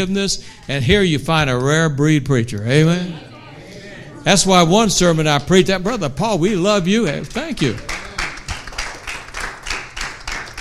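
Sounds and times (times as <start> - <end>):
speech: 0.0 - 3.3, 4.2 - 8.0
church congregation clapping during a sermon: 5.1 - 6.0, 6.8 - 10.6.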